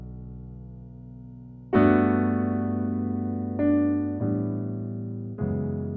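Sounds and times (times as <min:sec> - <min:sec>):
blues music in B minor: 0:01.8 - 0:05.8.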